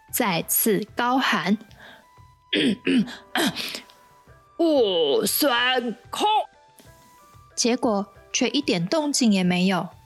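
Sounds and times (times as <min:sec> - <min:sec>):
speech: 0:00.1 - 0:03.9, 0:04.6 - 0:06.5, 0:07.6 - 0:10.0
narrator voicing the Golden Horn King clearing his throat: 0:02.5 - 0:03.8.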